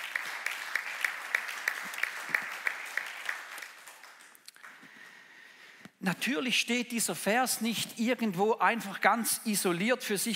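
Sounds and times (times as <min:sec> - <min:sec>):
audience applause: 0:00.0 - 0:04.9
speech: 0:06.0 - 0:10.3.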